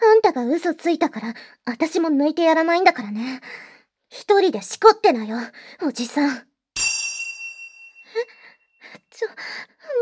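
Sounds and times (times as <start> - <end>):
speech: 0.4 - 6.5, 9.2 - 10.0
single bell ding: 6.8 - 8.5.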